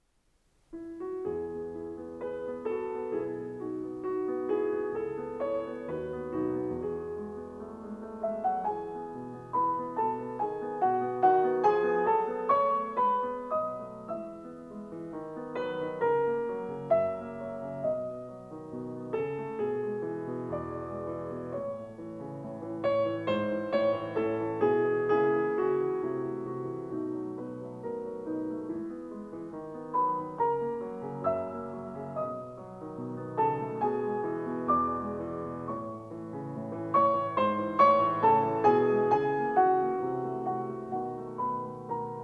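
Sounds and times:
piano sonata in E minor: 0:00.0 - 0:42.2.

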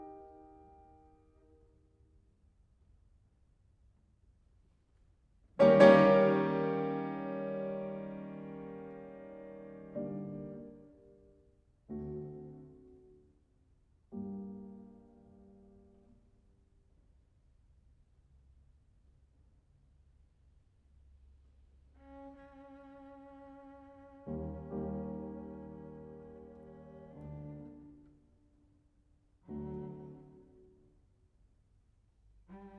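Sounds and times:
piano: 0:00.0 - 0:02.5, 0:05.5 - 0:17.2, 0:21.5 - 0:31.6, 0:32.2 - 0:32.7
cello: 0:05.6 - 0:11.2, 0:21.9 - 0:28.4, 0:29.4 - 0:31.0, 0:32.4 - 0:32.7.

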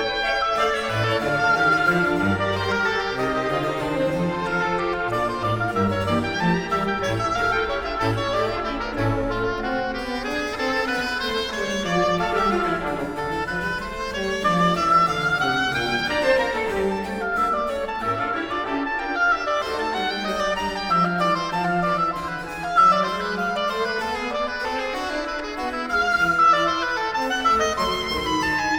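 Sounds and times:
oboe concerto in F major: 0:00.0 - 0:28.7.

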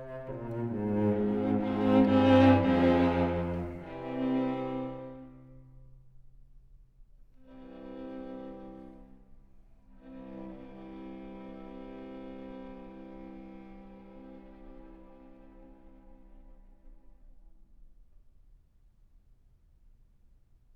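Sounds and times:
string quartet playing an adagio cantabile and allegro: 0:00.0 - 0:05.5, 0:07.5 - 0:09.1, 0:10.0 - 0:16.8.

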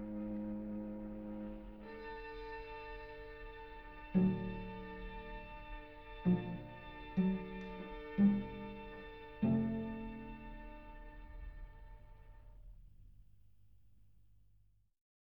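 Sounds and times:
string quartet playing in D major: 0:00.0 - 0:11.8.

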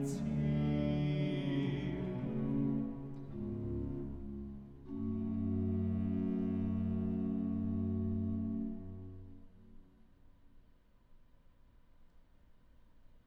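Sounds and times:
recitative singing: 0:00.0 - 0:09.1.

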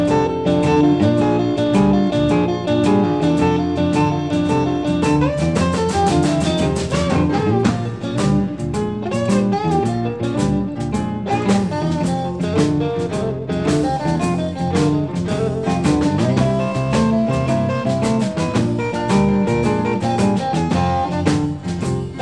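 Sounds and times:
honky tonk music: 0:00.0 - 0:22.1.

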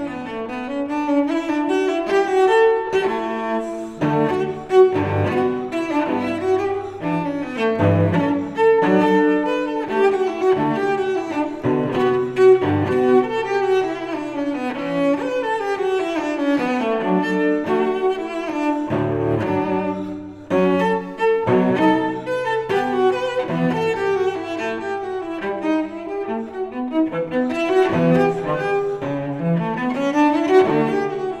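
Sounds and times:
solo cello suite: 0:00.0 - 0:31.3.

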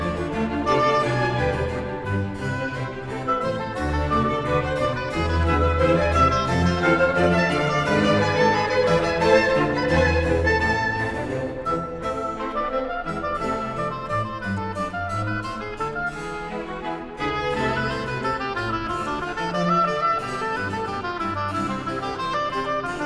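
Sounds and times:
oboe concerto music in D minor: 0:00.0 - 0:23.0.

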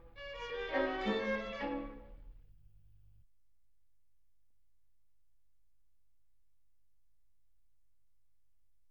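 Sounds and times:
string quartet in B flat major: 0:00.0 - 0:02.4.

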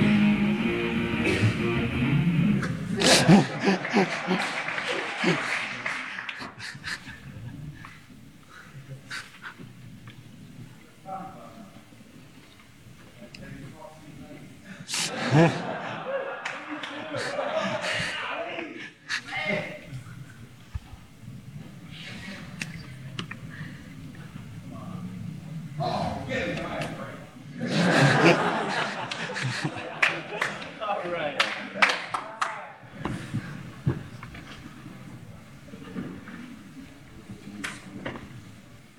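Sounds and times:
instruments tuning: 0:00.0 - 0:03.0
laughter: 0:00.8 - 0:07.6, 0:14.8 - 0:19.9, 0:25.8 - 0:32.1.

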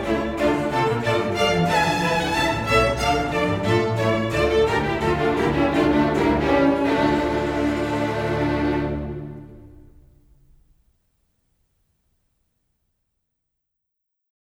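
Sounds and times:
double violin concerto: 0:00.0 - 0:10.1.

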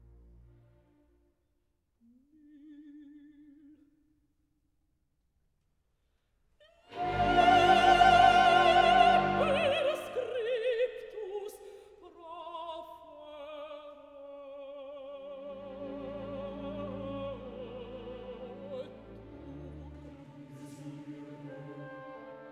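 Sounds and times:
mezzo-soprano singing: 0:06.7 - 0:22.5
chorus singing: 0:06.9 - 0:11.6, 0:14.8 - 0:22.5.

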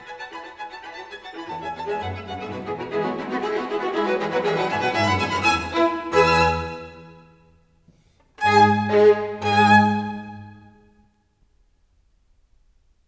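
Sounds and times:
string quartet in C-sharp minor playing a presto: 0:00.0 - 0:07.3, 0:08.4 - 0:10.8.

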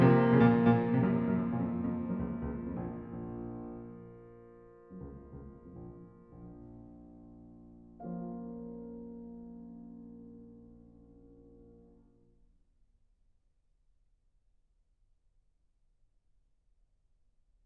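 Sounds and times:
prelude: 0:00.0 - 0:11.9.

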